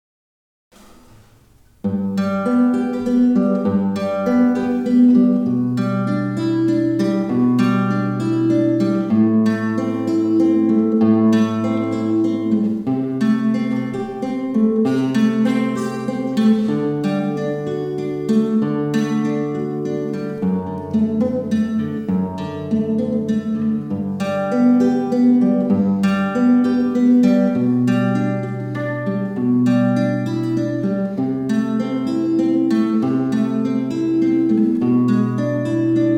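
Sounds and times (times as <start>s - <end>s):
solo etude: 2.0s - 36.1s.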